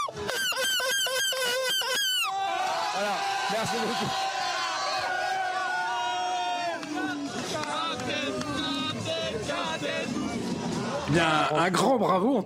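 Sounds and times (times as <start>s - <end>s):
crowd imitating seagull cries: 0.0s - 11.0s
speech: 3.6s - 4.3s, 11.1s - 12.4s.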